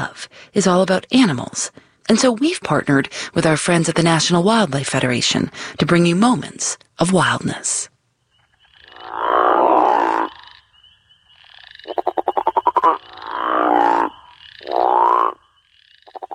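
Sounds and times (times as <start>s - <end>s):
speech: 0.0s - 7.9s
male crawfish frog breeding call: 8.8s - 10.6s, 11.4s - 16.3s.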